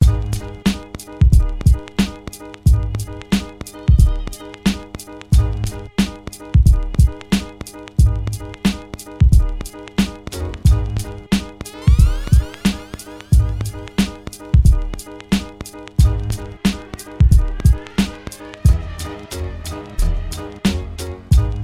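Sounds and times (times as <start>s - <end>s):
music beat: 0.0s - 21.6s.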